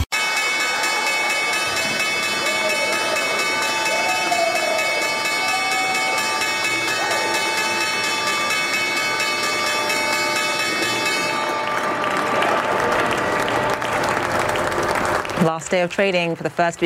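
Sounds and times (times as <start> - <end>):
stock exchange opening bell ringing: 0.1 - 15.3
speech: 15.7 - 16.8.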